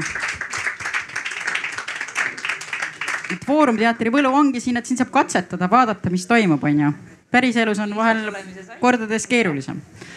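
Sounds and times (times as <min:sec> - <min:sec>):
audience applause: 0:00.0 - 0:04.0
speech: 0:03.3 - 0:10.1.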